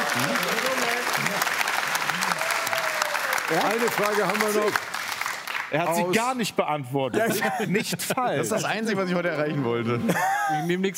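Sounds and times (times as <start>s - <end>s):
audience clapping: 0.0s - 6.4s
speech: 3.5s - 4.9s, 5.7s - 10.9s.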